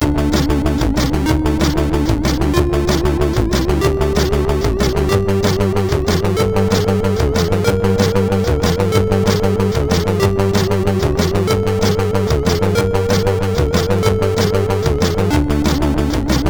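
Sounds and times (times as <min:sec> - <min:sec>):
MOS6581R4 SID chip music: 0:00.0 - 0:16.4.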